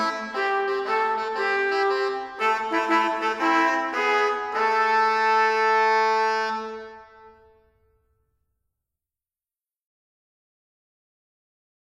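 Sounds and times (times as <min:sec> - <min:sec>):
wind instruments: 0:00.0 - 0:07.6
trumpet: 0:00.0 - 0:07.7.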